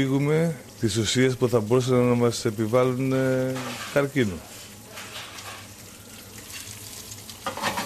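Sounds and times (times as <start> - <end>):
speech: 0.0 - 4.6
vegetables sautéing in olive oil: 0.0 - 7.8.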